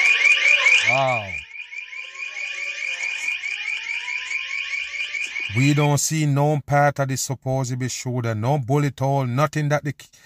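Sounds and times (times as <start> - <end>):
sirens wailing: 0.0 - 6.0
speech: 0.8 - 1.5, 5.5 - 10.2.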